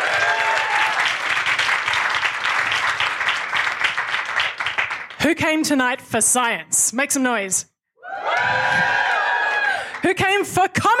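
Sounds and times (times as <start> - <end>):
audience applause: 0.0 - 5.2, 8.1 - 10.0
speech: 5.3 - 7.7, 10.1 - 10.9.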